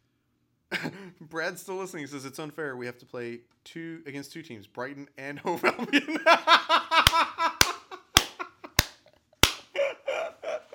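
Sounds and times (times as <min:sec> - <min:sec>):
speech: 0:01.0 - 0:07.3
laughter: 0:05.4 - 0:08.8, 0:09.7 - 0:10.7
loud hand clap: 0:07.0 - 0:09.7.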